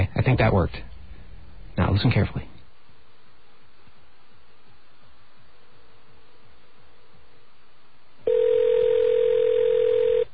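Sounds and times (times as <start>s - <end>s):
speech: 0.2s - 0.9s, 1.8s - 2.5s
telephone line ringing tone on an outgoing call: 8.3s - 10.3s.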